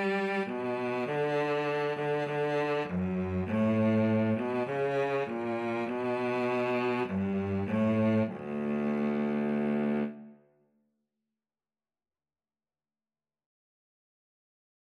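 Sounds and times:
violin and cello duet: 0.0s - 10.3s.

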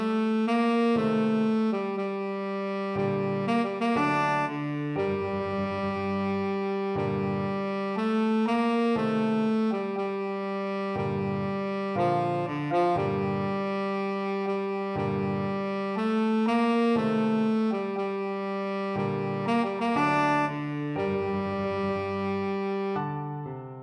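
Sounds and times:
tenor saxophone: 0.0s - 23.5s.

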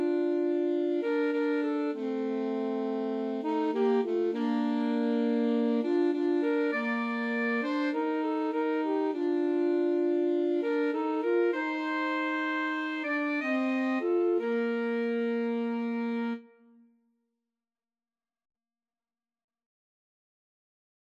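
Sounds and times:
alto saxophone duet playing a hymn: 0.0s - 16.8s.

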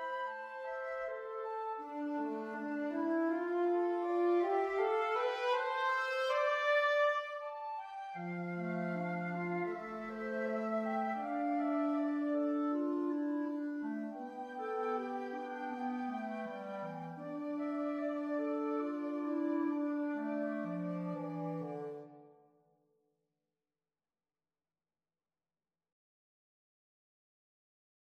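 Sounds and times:
woodwind trio playing: 0.0s - 22.3s.

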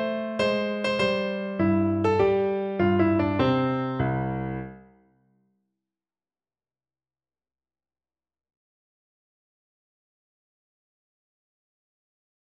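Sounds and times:
electric piano: 0.0s - 4.8s.

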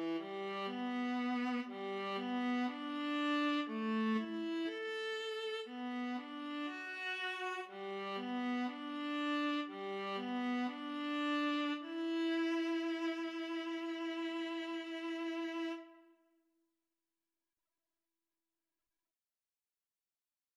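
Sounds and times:
violin and viola duet: 0.0s - 16.0s.

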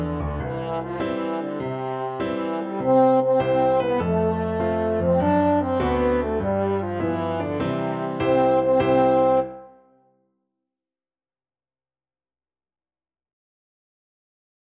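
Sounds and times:
French horn: 0.0s - 9.9s.

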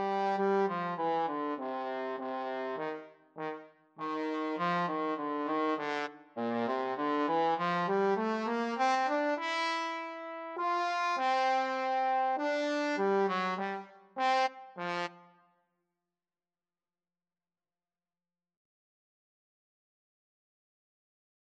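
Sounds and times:
trombone duet: 0.0s - 15.1s.

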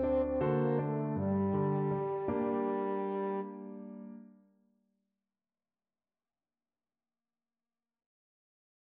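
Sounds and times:
French horn playing: 0.0s - 3.6s.

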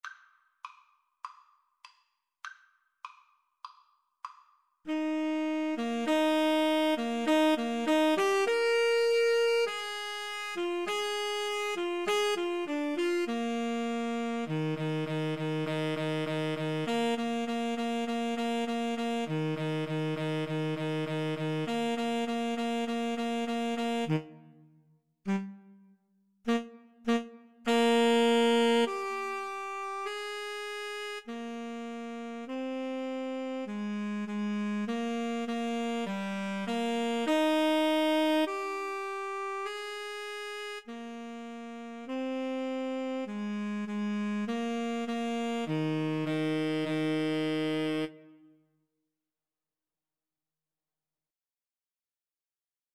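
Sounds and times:
tenor saxophone duet: 4.9s - 24.6s, 25.3s - 25.8s, 26.5s - 48.4s.

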